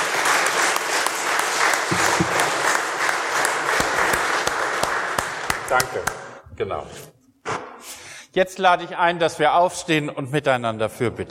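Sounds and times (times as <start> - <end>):
applause: 0.0 - 6.4
speech: 5.7 - 7.2, 8.4 - 11.3.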